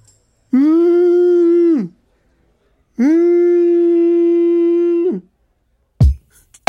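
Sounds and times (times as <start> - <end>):
human voice imitating a whale call: 0.5 - 2.0, 2.9 - 5.4.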